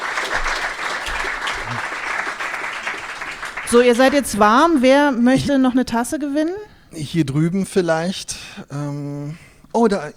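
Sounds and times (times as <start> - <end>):
crowd applauding: 0.0 - 4.2
speech: 3.7 - 10.1.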